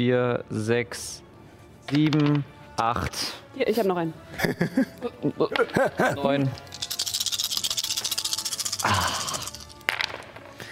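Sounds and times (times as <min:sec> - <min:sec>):
speech: 0:00.0 - 0:01.2, 0:01.9 - 0:06.7
laughter: 0:04.3 - 0:06.5
many dice rattling and rolling: 0:06.4 - 0:10.5.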